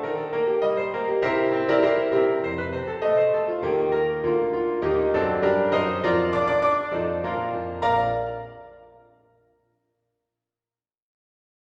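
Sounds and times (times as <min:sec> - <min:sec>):
piano accompaniment track: 0:00.0 - 0:09.3.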